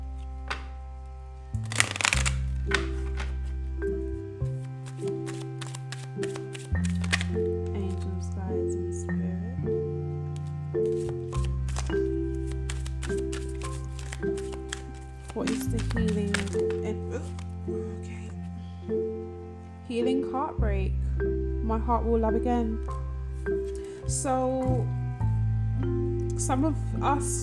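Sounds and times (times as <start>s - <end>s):
music with low notes and bass line: 0.0s - 27.4s
tarot and goddess oracle cards being shuffled: 0.1s - 0.7s, 1.6s - 3.6s, 4.4s - 8.1s, 10.4s - 18.4s
speech: 21.9s - 23.0s, 24.2s - 24.9s, 26.5s - 27.4s.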